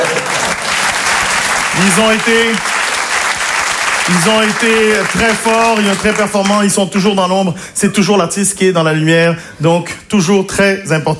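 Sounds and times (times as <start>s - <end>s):
audience applause: 0.0s - 6.7s
speech: 1.8s - 2.7s, 4.1s - 11.1s.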